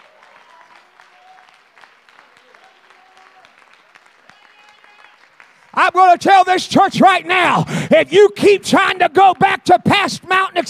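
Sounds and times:
audience clapping: 0.0s - 6.6s
speech: 5.8s - 10.6s.

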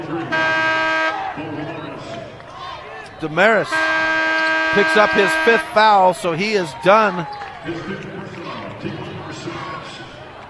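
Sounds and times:
referee's whistle blowing under the basket: 0.3s - 2.0s, 3.1s - 7.6s
speech: 3.2s - 4.0s, 4.7s - 8.1s.

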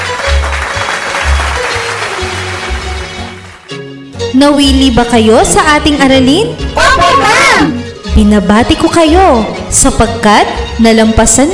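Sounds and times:
students in a class applauding themselves: 0.0s - 3.8s
speech: 4.3s - 11.5s.

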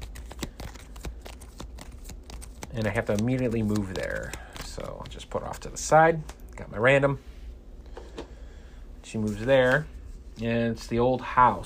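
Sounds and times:
small stack of cards shuffled by hand: 0.0s - 6.4s
speech: 2.7s - 7.3s, 9.1s - 11.6s.

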